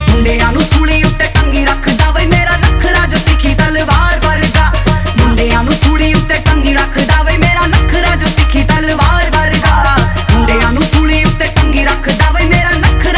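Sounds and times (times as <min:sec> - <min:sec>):
dhol drum: 0:00.0 - 0:13.1.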